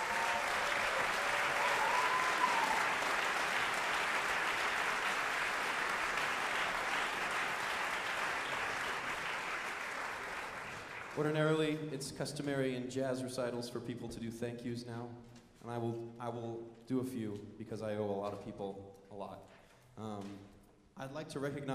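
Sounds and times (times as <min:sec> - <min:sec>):
sustained audience applause: 0:00.0 - 0:11.4
speech: 0:11.2 - 0:21.7.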